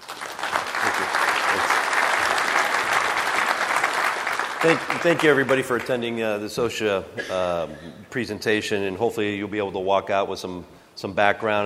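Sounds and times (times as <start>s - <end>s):
audience applause welcoming a former OSHA chief of staff to a safety presentation: 0.0s - 5.9s
speech: 4.6s - 11.6s.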